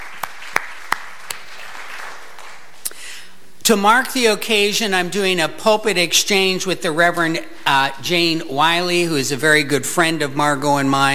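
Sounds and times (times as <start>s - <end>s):
group applauding: 0.0s - 3.1s
speech: 3.7s - 11.1s.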